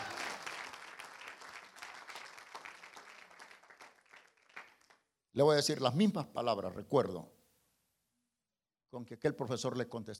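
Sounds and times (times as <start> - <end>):
audience applause: 0.0 - 5.0
speech: 5.4 - 7.4, 8.9 - 10.1.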